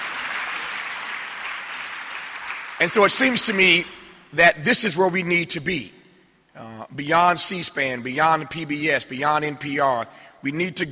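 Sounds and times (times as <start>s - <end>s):
audience applause: 0.0s - 3.5s
speech: 2.8s - 6.0s, 6.6s - 10.9s.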